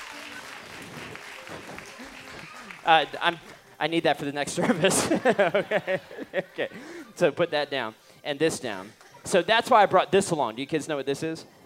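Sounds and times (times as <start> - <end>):
crowd applause: 0.0 - 3.6
speech: 2.9 - 11.6
laughter: 4.5 - 7.4.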